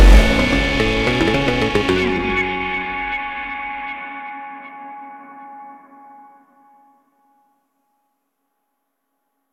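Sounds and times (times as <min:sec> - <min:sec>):
dubstep music: 0:00.0 - 0:03.9.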